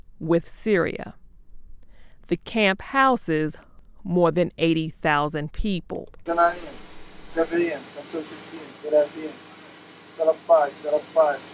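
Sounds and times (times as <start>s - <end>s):
speech: 0.2s - 1.2s, 2.3s - 9.5s, 10.2s - 11.5s
electricity generator running at a refugee camp: 6.2s - 11.5s.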